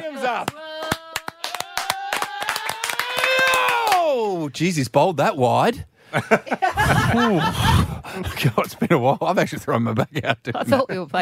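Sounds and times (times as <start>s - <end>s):
speech: 0.2s - 0.6s, 4.4s - 11.2s
hands clapping someone in: 0.2s - 4.1s
laughter: 6.1s - 11.2s.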